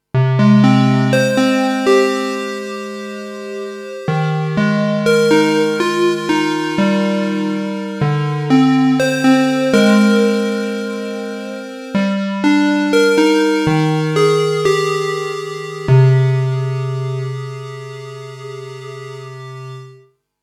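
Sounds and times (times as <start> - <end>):
Juno 60 synthesizer melody with chorus effect: 0.2 - 20.1.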